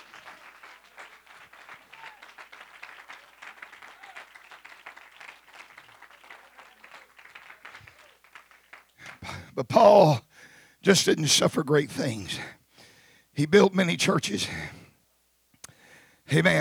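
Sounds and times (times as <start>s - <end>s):
audience clapping hands: 0.0s - 10.2s
speech: 9.2s - 10.2s, 10.8s - 12.6s, 13.4s - 14.8s, 16.3s - 16.6s.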